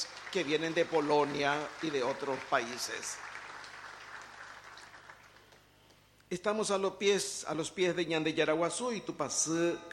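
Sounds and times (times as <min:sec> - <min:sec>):
church congregation clapping to welcome guests at Sunday Mass: 0:00.0 - 0:06.0
speech: 0:00.3 - 0:03.3, 0:06.3 - 0:09.9.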